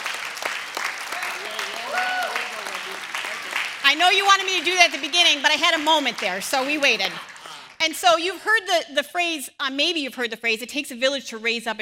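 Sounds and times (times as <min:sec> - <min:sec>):
audience applauding: 0:00.0 - 0:07.8
speech: 0:03.9 - 0:11.7.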